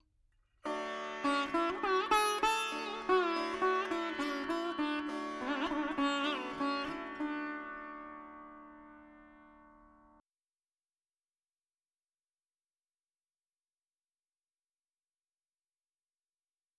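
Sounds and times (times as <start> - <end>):
dry veena melody: 0.6 - 10.2.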